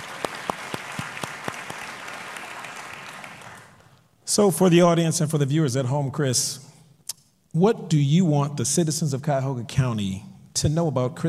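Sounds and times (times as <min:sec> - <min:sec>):
audience applause: 0:00.0 - 0:03.9
speech: 0:04.3 - 0:06.7, 0:07.6 - 0:11.2.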